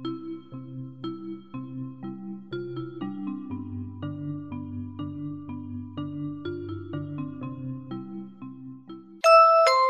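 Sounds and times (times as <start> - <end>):
soft instrumental background music: 0.0 - 9.8
bright chime: 9.2 - 9.8.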